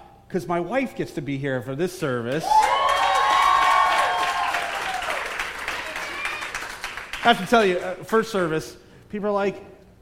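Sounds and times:
speech: 0:00.3 - 0:02.7, 0:07.2 - 0:09.7
audience clapping: 0:02.3 - 0:08.6.

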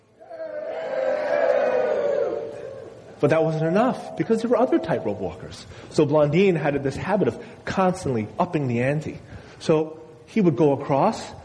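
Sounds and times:
single voice imitating a crowd cheering a tightrope walker: 0:00.2 - 0:05.4
speech: 0:03.2 - 0:11.4.

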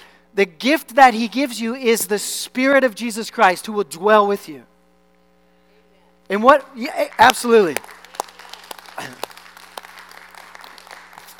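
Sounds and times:
speech: 0:00.3 - 0:04.7, 0:06.3 - 0:08.0
audience clapping: 0:06.9 - 0:11.3.

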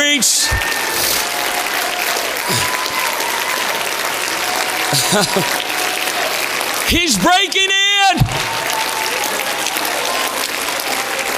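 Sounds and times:
crowd clapping hands: 0:00.0 - 0:11.3
laughter: 0:00.0 - 0:11.3
speech: 0:04.9 - 0:05.6, 0:06.9 - 0:08.7.

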